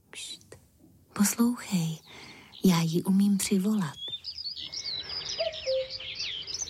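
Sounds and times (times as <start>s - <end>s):
speech: 1.2s - 4.0s
high chirping birdsong in open woodland: 1.2s - 6.6s
cuckoo two-note call: 4.1s - 6.6s.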